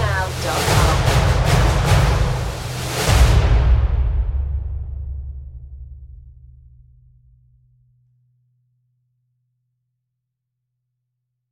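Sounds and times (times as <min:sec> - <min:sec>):
percussion: 0:00.0 - 0:07.4.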